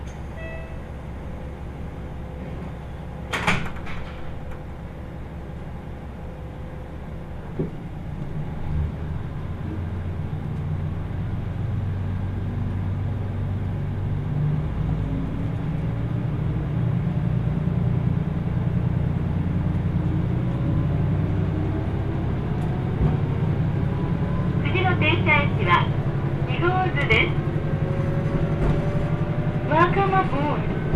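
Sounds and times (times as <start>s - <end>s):
Kyushu Odan limited express diesel rumble on the Hohi Line: 0.0s - 30.9s
voices: 24.6s - 27.5s, 29.6s - 30.9s.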